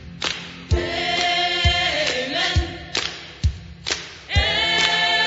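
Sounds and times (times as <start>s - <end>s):
gospel choir singing amen: 0.3s - 3.4s, 4.2s - 5.2s.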